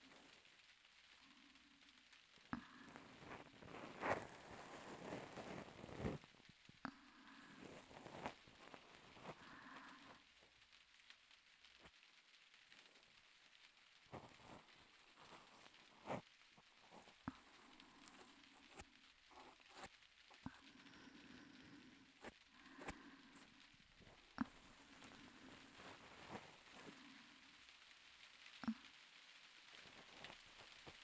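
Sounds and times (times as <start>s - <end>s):
left ear cleaning: 2.5s - 6.4s, 7.2s - 10.3s, 14.1s - 27.2s, 29.8s - 31.0s.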